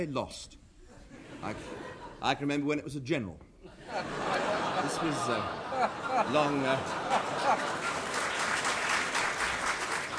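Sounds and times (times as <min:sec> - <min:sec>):
speech: 0:00.0 - 0:00.6, 0:01.4 - 0:07.9
laughter: 0:00.9 - 0:02.4, 0:03.6 - 0:09.2
crowd applause: 0:06.3 - 0:10.1.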